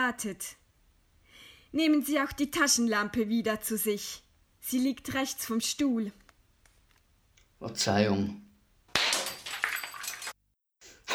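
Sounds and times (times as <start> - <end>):
speech: 0.1 - 0.6, 1.7 - 6.2, 7.6 - 8.5
vase toppling and shattering: 8.9 - 10.4
shards tinkling and rattling: 9.0 - 10.4.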